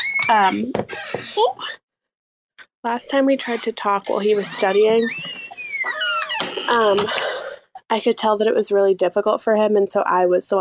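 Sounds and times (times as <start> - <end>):
door creaking open with a loud squeak: 0.0 - 1.8, 3.3 - 7.2
speech: 0.3 - 1.8, 2.8 - 6.0, 6.7 - 7.3, 7.9 - 10.6.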